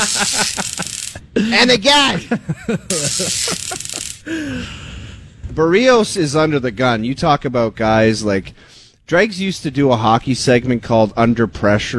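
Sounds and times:
sizzle sound effect: 0.0s - 1.2s, 2.9s - 4.4s
laughter: 0.0s - 4.6s
speech: 0.0s - 4.9s, 5.5s - 11.9s.

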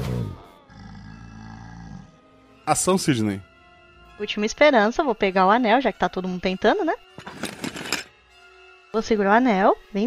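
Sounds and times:
monstrous alligator-like creature roar effect: 0.0s - 2.2s
speech: 2.7s - 3.5s, 4.2s - 7.5s, 8.9s - 10.0s.

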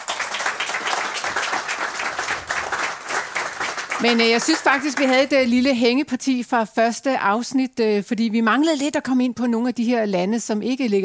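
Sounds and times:
studio audience applause for a panel on a Danish show: 0.0s - 5.6s
speech: 4.0s - 11.0s.

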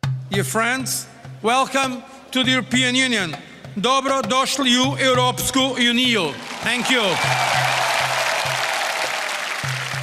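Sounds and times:
speech: 0.3s - 7.6s
large crowd applauding at a celebration: 6.4s - 10.0s.

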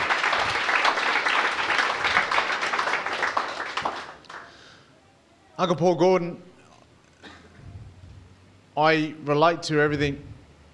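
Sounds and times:
audience clapping: 0.0s - 4.7s
speech: 5.6s - 6.5s, 8.8s - 10.3s.

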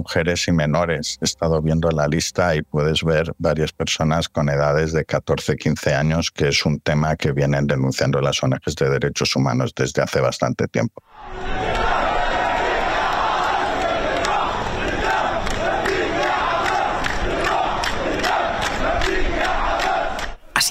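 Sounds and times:
speech: 0.0s - 11.9s
crowd celebrating a released prisoner in the streets: 11.1s - 20.6s.

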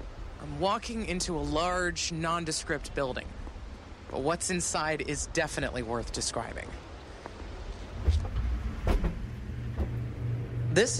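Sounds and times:
speech: 0.6s - 3.4s, 4.1s - 6.9s, 10.8s - 10.9s
environmental growth chamber humming: 7.5s - 10.9s.

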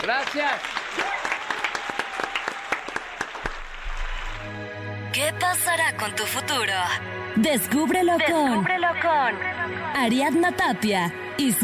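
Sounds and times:
speech: 0.0s - 1.3s, 4.5s - 11.6s
applause: 0.0s - 4.8s.

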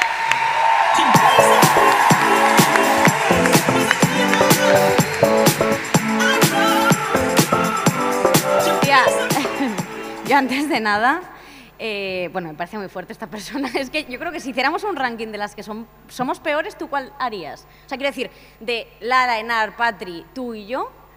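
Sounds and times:
whoops and shouted cheers: 0.0s - 9.4s
crowd applause: 0.0s - 10.3s
speech: 10.4s - 21.0s.

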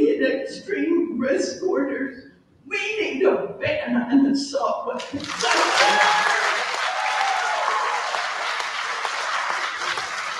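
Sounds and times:
speech: 0.4s - 6.6s
audience applause: 5.0s - 10.3s.

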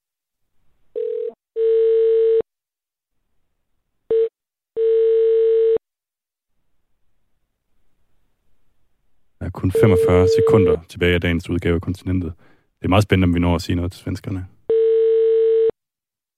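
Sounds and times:
telephone line tone and ringing: 1.0s - 2.4s, 4.1s - 5.8s, 9.7s - 10.8s, 14.7s - 15.8s
speech: 9.6s - 14.6s.

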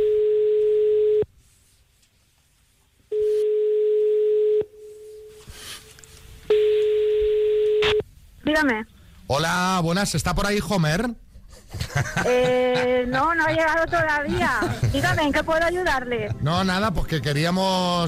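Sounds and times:
telephone line ringback tones during a call: 0.0s - 1.2s, 3.1s - 5.5s, 6.5s - 8.0s
speech: 8.6s - 18.0s
laughter: 11.5s - 16.8s.

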